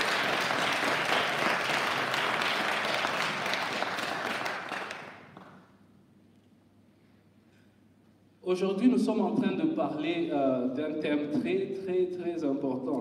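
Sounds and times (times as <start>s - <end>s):
audience applause: 0.0s - 5.7s
speech: 8.5s - 12.9s.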